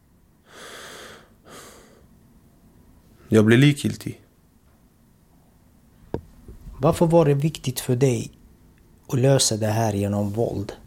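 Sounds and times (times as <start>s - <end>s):
person demonstrating deep breathing: 0.4s - 2.1s
speech: 3.3s - 4.2s, 6.8s - 8.4s, 9.1s - 10.8s.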